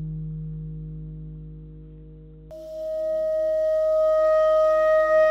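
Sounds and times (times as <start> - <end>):
clarinet notes: 2.5 - 5.2.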